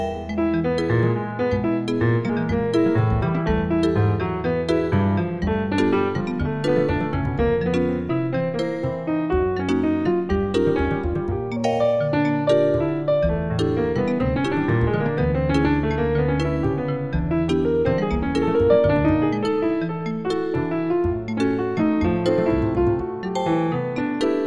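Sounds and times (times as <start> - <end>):
bass: 0.0 - 24.4
piano: 0.0 - 24.4
vibraphone: 0.0 - 24.4.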